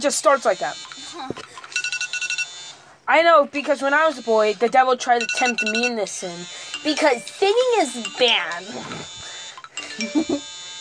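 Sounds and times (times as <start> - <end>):
speech: 0.0 - 1.5, 3.1 - 9.2, 10.0 - 10.5
phone notification chimes: 1.7 - 2.6, 5.1 - 9.2, 9.8 - 10.7.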